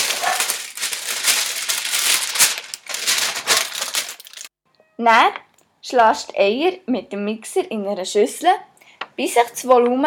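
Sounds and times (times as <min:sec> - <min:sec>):
baking paper crinkling as pressed into a springform pan: 0:00.0 - 0:04.5
speech: 0:05.0 - 0:10.0.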